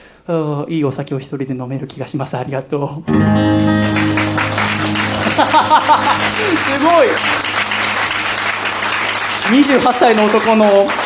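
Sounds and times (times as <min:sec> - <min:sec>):
speech: 0:00.2 - 0:04.2, 0:05.4 - 0:07.5, 0:09.5 - 0:11.0
audience applause: 0:03.6 - 0:11.0
laughter: 0:04.4 - 0:08.4.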